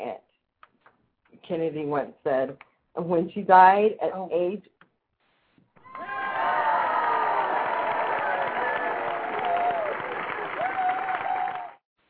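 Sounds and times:
speech: 1.5 - 4.8
audience applause: 5.8 - 11.8.

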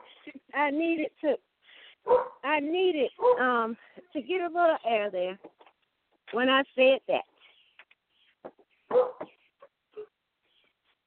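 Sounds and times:
speech: 0.2 - 5.6, 6.3 - 7.3, 8.9 - 9.3
dogs barking outdoors: 2.0 - 2.4, 3.2 - 3.4, 8.9 - 9.4.

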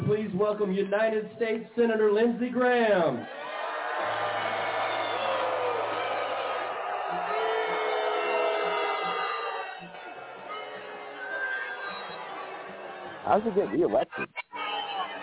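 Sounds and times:
speech: 0.1 - 3.4, 13.3 - 14.4
scattered shouts: 3.2 - 13.4
large crowd booing a senator: 3.2 - 15.2.

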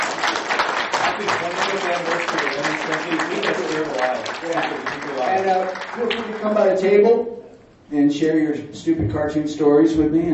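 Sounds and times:
audience applause at a 20th-anniversary celebration: 0.0 - 6.8
speech: 1.2 - 10.3.

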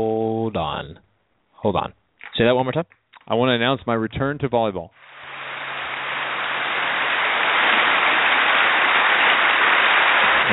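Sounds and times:
speech: 0.0 - 5.2
crowd applause: 5.2 - 10.5.

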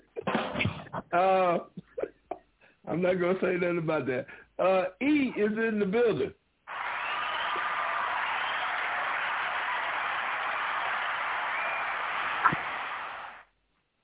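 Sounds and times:
speech: 1.1 - 1.8, 2.9 - 6.4
remixed sampled hand clapping sound drop: 6.7 - 13.4.

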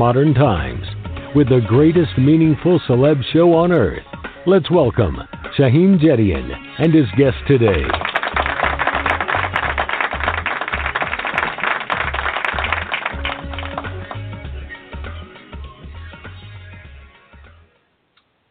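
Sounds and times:
speech: 0.0 - 8.1
audience clapping: 7.4 - 14.5.

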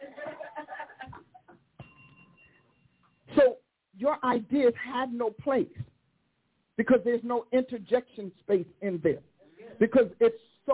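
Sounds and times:
laughter: 0.0 - 1.5
big bell ringing: 1.8 - 3.3
speech: 4.0 - 5.9, 6.8 - 10.7.

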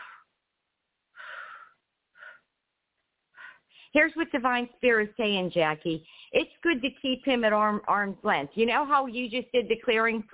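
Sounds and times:
deep breaths: 0.0 - 0.4, 1.1 - 2.5, 3.3 - 4.0, 6.0 - 6.4
speech: 3.9 - 10.3.

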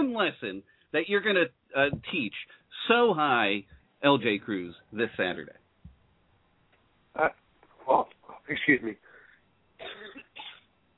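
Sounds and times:
speech: 0.2 - 5.6, 7.2 - 9.0
throaty coughing: 9.8 - 10.7.

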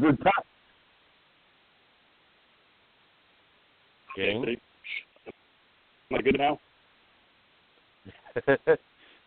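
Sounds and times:
choppy phone call voice breaking up: 0.0 - 0.5, 4.1 - 5.4, 6.1 - 6.6
speech: 0.0 - 0.5, 4.2 - 5.0, 6.1 - 6.7, 8.0 - 8.9
laughter: 8.1 - 8.8.

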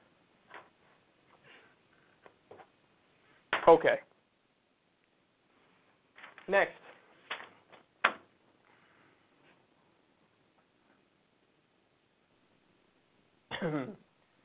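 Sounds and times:
speech: 3.7 - 4.1, 6.5 - 6.8, 13.6 - 14.0
man clearing throat from lint caught in throat: 13.5 - 14.1.

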